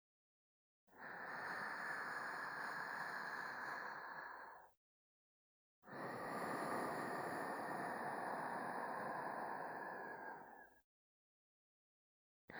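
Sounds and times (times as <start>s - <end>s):
sleep breathing loop: 1.0s - 4.6s, 6.0s - 10.6s.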